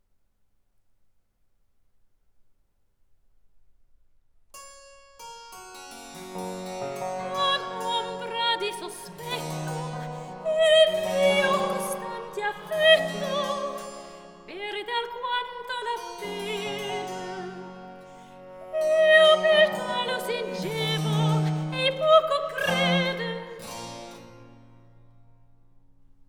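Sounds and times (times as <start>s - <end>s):
cantata recitative: 6.8s - 23.9s.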